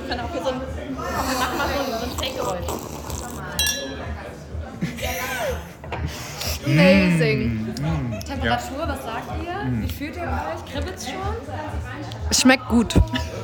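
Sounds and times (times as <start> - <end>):
murmur of people talking and laughing: 0.0 - 13.4
sparkling wine glasses clinking in a toast: 3.6 - 4.4
speech: 6.7 - 13.4.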